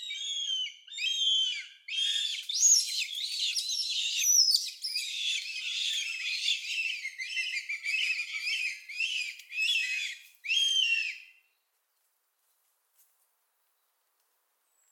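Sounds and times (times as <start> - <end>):
young northern goshawk calling, fledged but not yet flying: 0.0 - 11.3.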